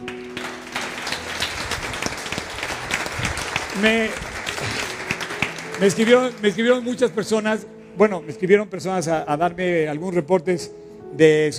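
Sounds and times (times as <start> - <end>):
audience applause: 0.0 - 7.6
speech: 3.8 - 4.9, 5.8 - 11.5.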